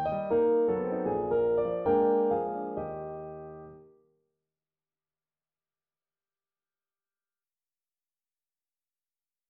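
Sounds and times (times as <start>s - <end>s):
piano: 0.0s - 4.1s.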